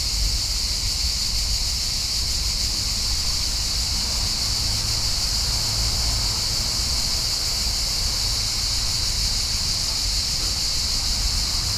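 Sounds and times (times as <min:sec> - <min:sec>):
summer cicadas droning in a park in Lisbon Portugal: 0:00.0 - 0:11.7.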